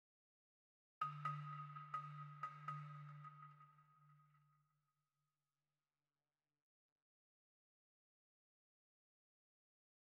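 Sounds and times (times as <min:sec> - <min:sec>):
balafon: 0:01.0 - 0:03.8.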